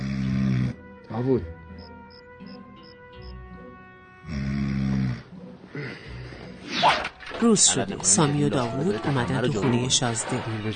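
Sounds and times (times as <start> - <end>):
man lying down snoring: 0.0 - 0.8, 4.2 - 5.9
speech: 1.2 - 1.6, 7.4 - 10.7.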